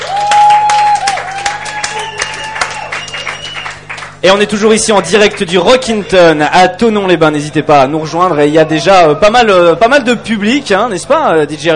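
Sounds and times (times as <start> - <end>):
audience applause after a live set: 0.0 - 5.7
speech: 4.2 - 11.7.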